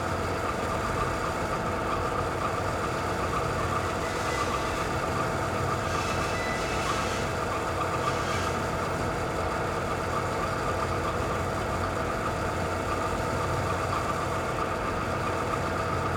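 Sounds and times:
big coal dispatcher machine starting, speeding up and stopping: 0:00.0 - 0:16.1.

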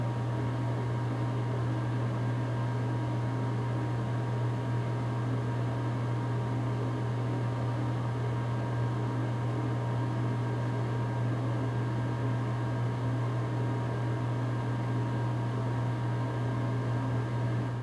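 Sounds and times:
bathroom fan running: 0:00.0 - 0:17.8.

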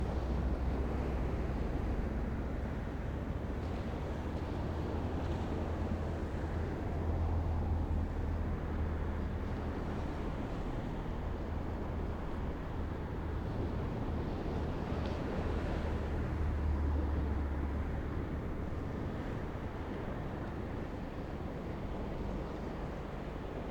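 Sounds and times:
distant calm beach surf on the coast: 0:00.0 - 0:23.6.

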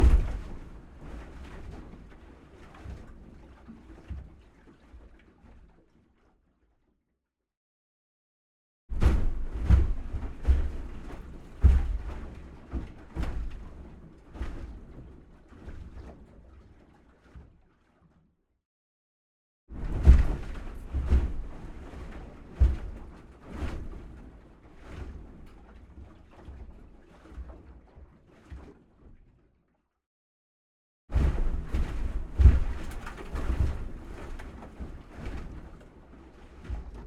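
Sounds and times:
medium waves impacting an aluminium boat hull: 0:00.0 - 0:04.4, 0:09.0 - 0:16.2, 0:19.8 - 0:29.2, 0:31.1 - 0:37.0.

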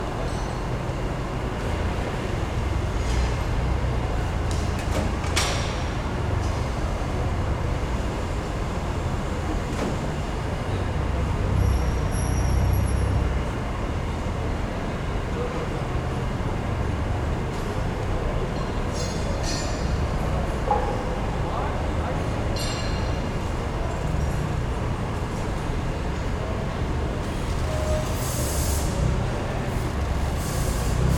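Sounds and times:
industrial warehouse ambience: 0:00.0 - 0:31.1.

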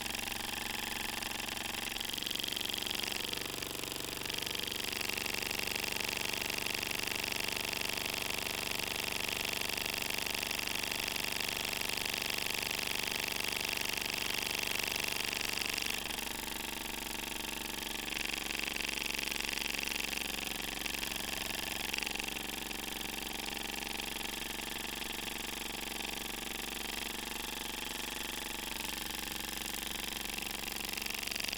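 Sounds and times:
model steam engine flywheel spinning: 0:00.0 - 0:08.6, 0:09.6 - 0:31.5
press machine: 0:00.0 - 0:08.9, 0:11.9 - 0:31.5
model steam engine starting and running: 0:00.0 - 0:31.5.

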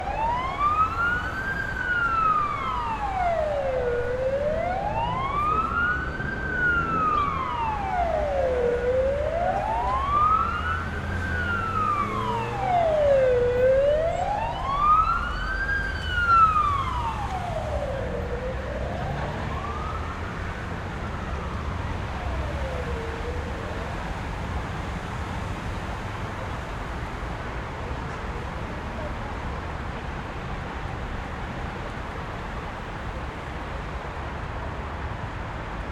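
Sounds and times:
siren in city streets: 0:00.0 - 0:24.9
busy city street traffic: 0:00.0 - 0:35.9.

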